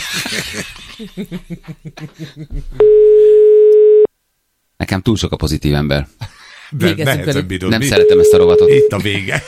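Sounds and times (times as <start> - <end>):
people laughing: 0.0 - 2.8, 6.2 - 8.0, 8.7 - 9.4
speech: 0.1 - 3.4, 4.8 - 9.4
telephone line tone on an unanswered call: 2.8 - 4.1, 8.0 - 9.0.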